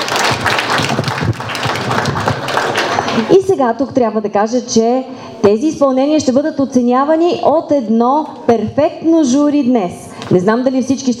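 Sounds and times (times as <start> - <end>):
audience applause: 0.0 - 3.3
speech: 3.2 - 11.1.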